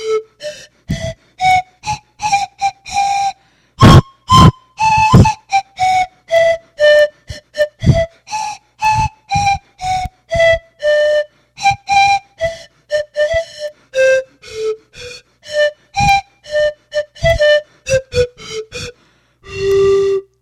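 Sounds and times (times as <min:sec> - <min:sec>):
panflute: 0:00.0 - 0:20.4.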